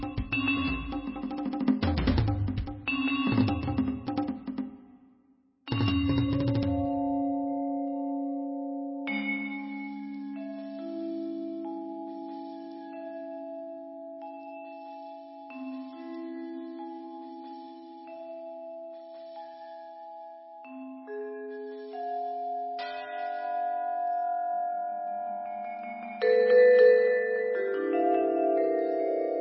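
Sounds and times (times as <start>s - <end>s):
percussion duet: 0.0s - 7.7s, 9.0s - 29.4s.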